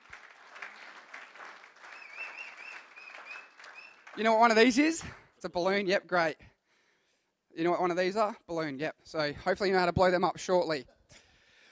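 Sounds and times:
audience applause: 0:00.0 - 0:05.2
speech: 0:04.2 - 0:06.4, 0:07.6 - 0:11.0.

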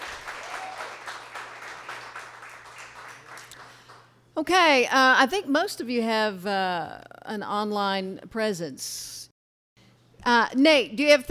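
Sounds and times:
crowd applause: 0:00.0 - 0:04.1
speech: 0:04.4 - 0:09.2, 0:10.2 - 0:11.3.

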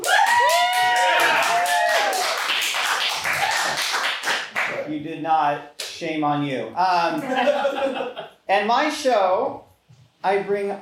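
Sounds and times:
people whooping and cheering: 0:00.0 - 0:02.5, 0:03.2 - 0:03.9
audience applause: 0:00.0 - 0:04.7
speech: 0:05.2 - 0:09.6, 0:10.2 - 0:10.8
laughter: 0:07.1 - 0:08.4.

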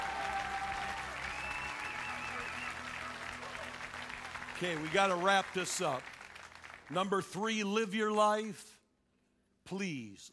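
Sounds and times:
audience clapping: 0:00.0 - 0:07.4
speech: 0:04.6 - 0:06.2, 0:06.9 - 0:08.8, 0:09.7 - 0:10.3.

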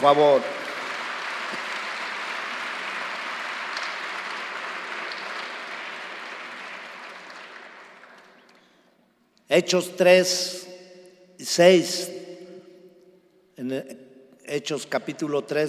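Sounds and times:
speech: 0:00.0 - 0:00.6, 0:09.5 - 0:10.6, 0:11.4 - 0:12.2, 0:13.6 - 0:15.6
crowd clapping in a reverberant room: 0:00.0 - 0:08.8.

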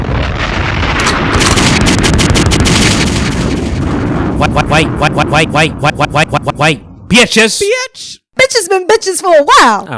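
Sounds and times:
bomb drop sound effect: 0:00.0 - 0:07.2
speech: 0:04.4 - 0:09.9.

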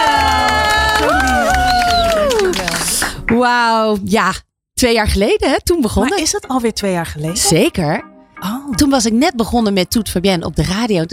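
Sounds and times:
audience applause: 0:00.0 - 0:03.3
speech: 0:03.4 - 0:11.1.

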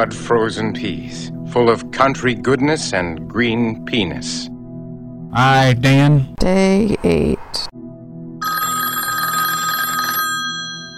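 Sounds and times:
speech: 0:00.0 - 0:04.5, 0:05.3 - 0:07.8
phone ringing with electronic trill: 0:08.4 - 0:10.9.

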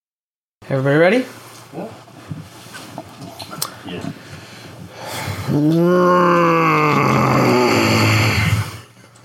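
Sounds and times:
speech: 0:00.7 - 0:02.1, 0:03.9 - 0:04.2, 0:05.5 - 0:08.0
quiet rustling: 0:01.3 - 0:04.9.

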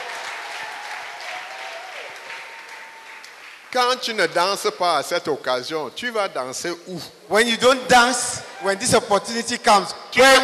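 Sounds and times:
audience clapping: 0:00.0 - 0:04.2
speech: 0:03.8 - 0:10.4.

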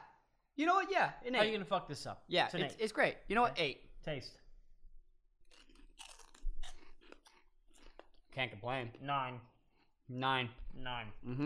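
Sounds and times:
speech: 0:00.6 - 0:04.4, 0:08.4 - 0:09.5, 0:10.1 - 0:11.4
biting and chewing a stale chip: 0:05.4 - 0:08.1.

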